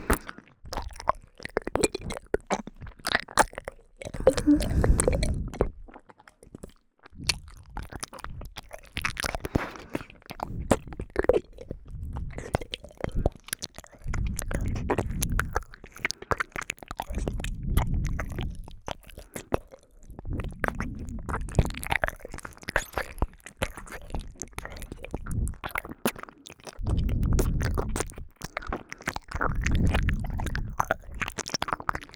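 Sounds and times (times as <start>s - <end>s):
saliva-filled ear licking on the right side: 0.0s - 32.1s.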